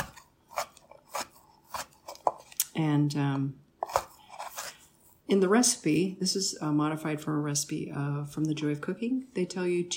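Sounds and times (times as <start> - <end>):
knife chopping dried apricots and apples: 0.0 - 2.5
speech: 2.8 - 3.6, 5.3 - 9.9.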